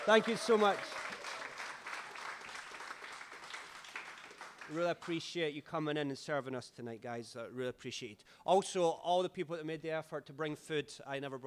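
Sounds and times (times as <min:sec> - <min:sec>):
speech: 0:00.0 - 0:01.1, 0:04.7 - 0:11.4
audience cheering: 0:00.0 - 0:04.7.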